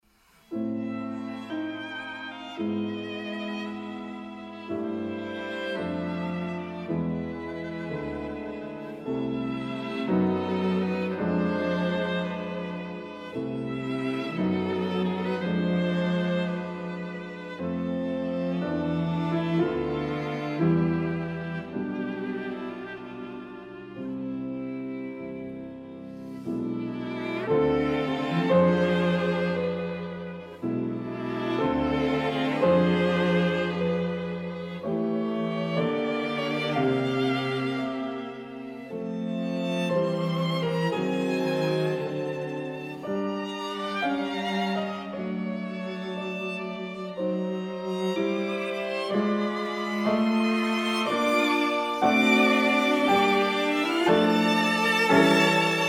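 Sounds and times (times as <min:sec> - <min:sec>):
piano quintet playing: 0:00.5 - 0:55.8.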